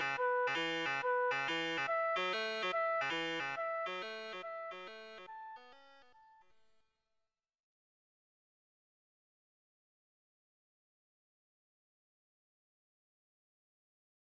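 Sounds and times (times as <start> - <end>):
bassoon note with prime harmonics: 0.0 - 6.1.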